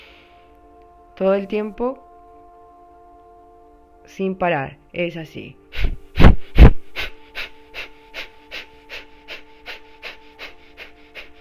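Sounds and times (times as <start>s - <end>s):
steady tonal drone: 0.0s - 11.3s
speech: 1.2s - 2.0s, 4.1s - 5.6s
rapid breathing in and out through the nose: 5.7s - 11.3s.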